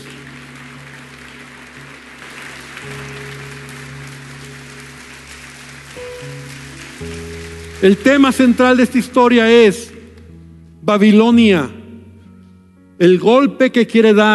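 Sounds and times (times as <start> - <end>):
audience applause: 0.0 - 10.0
sustained keyboard chords: 0.0 - 13.6
speech: 7.8 - 9.9, 10.8 - 11.8, 13.0 - 14.3.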